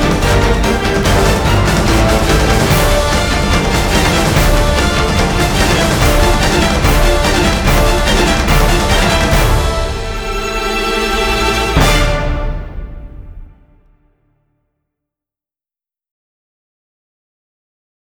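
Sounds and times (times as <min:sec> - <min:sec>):
orchestra playing: 0:00.0 - 0:13.9.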